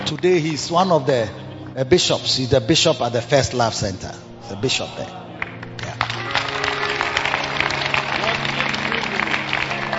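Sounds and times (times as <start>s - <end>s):
speech: 0.1s - 5.2s
audience clapping: 5.4s - 9.9s.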